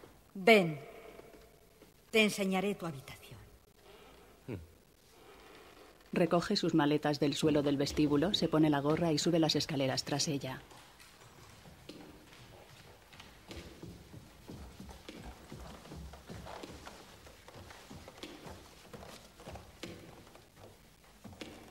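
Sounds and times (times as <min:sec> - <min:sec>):
speech: 0:00.4 - 0:00.9, 0:02.1 - 0:03.2, 0:04.5 - 0:04.7, 0:06.1 - 0:10.8
hoofbeats of a black horse ridden across the meadows of Jutland: 0:07.4 - 0:21.6.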